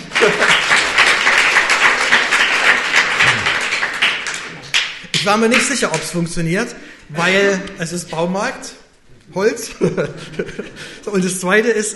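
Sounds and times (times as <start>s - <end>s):
laughter: 0.0s - 0.8s, 9.7s - 11.0s
audience applause: 0.0s - 6.0s
speech: 0.2s - 0.6s, 5.2s - 11.9s.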